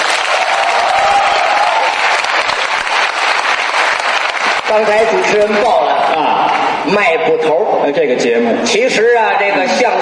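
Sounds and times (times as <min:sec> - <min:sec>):
audience applause: 0:00.0 - 0:05.4
speech: 0:04.7 - 0:10.0.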